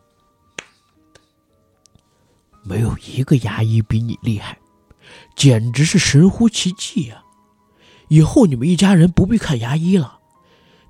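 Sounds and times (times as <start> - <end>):
hand clapping: 0.5 - 1.3
speech: 2.6 - 7.2, 8.1 - 10.2.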